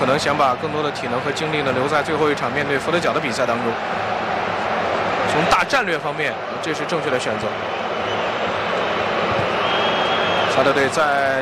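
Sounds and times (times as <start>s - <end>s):
speech: 0.0s - 4.2s, 5.3s - 7.8s, 10.6s - 11.3s
football fans booing in a stadium during a Saudi Arabia match: 0.0s - 11.3s.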